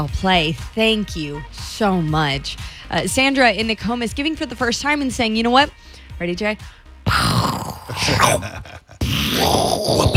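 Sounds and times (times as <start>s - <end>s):
speech: 0.0s - 6.8s, 7.4s - 8.8s, 9.4s - 10.1s
person imitating a pirate cannon with their voice: 7.1s - 10.1s.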